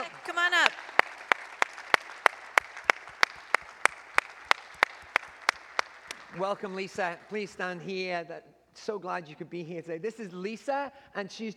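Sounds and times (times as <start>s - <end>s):
audience applause welcoming new member: 0.0s - 7.3s
sharp evenly spaced claps: 0.0s - 7.6s
speech: 6.4s - 11.5s.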